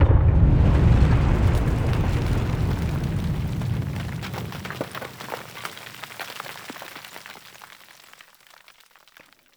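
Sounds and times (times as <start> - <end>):
battle ambient tunnel rumble: 0.0 - 5.5.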